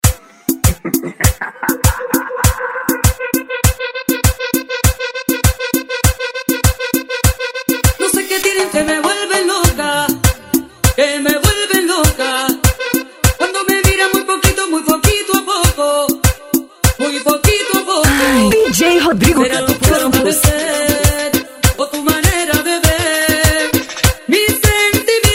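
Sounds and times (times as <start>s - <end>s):
reggaeton music: 0.0s - 25.3s
laughter: 0.6s - 3.2s.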